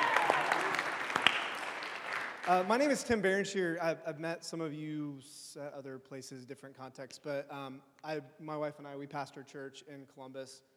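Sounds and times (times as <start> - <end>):
audience scattered clapping: 0.0 - 2.8
speech: 2.5 - 10.7.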